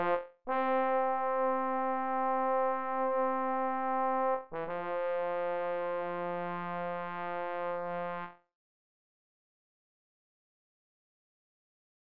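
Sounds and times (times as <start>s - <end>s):
trombone: 0.0s - 8.4s.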